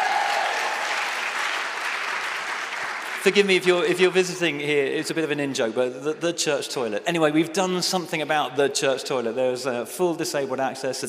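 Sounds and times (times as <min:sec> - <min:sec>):
crowd clapping: 0:00.0 - 0:04.1
speech: 0:03.2 - 0:11.0.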